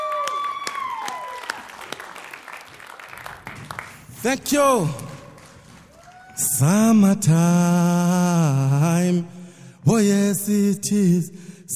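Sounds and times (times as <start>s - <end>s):
audience clapping: 0.0s - 6.6s
speech: 4.2s - 5.1s, 6.6s - 11.4s.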